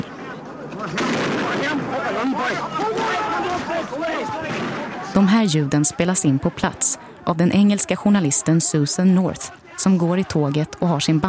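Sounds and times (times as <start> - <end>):
crowd chaos during live gunfire: 0.0 - 11.2
speech: 0.8 - 11.2
live gunfire: 0.9 - 2.0, 4.4 - 5.2.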